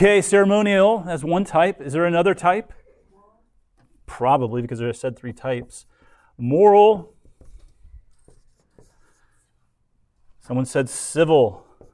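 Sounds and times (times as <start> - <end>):
speech: 0.0 - 2.8, 4.1 - 7.2, 10.4 - 11.6
soft scratchy writing strokes during a class: 7.1 - 9.6, 11.6 - 11.9.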